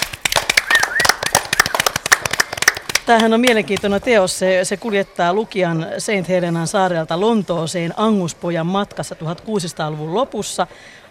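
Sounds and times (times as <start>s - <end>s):
applause for a literary prize winner: 0.0s - 3.3s
speech: 3.1s - 11.0s.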